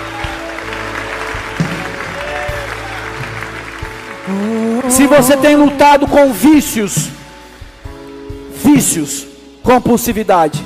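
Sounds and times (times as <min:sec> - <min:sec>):
applause: 0:00.0 - 0:07.0
speech: 0:04.3 - 0:07.2, 0:08.7 - 0:10.6.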